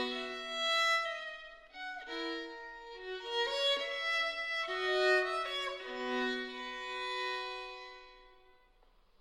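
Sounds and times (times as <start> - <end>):
violin playing a loure: 0.0 - 8.7.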